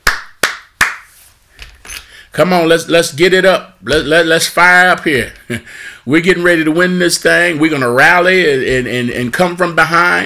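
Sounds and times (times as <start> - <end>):
hand clapping: 0.0 - 1.2
speech: 2.3 - 10.2.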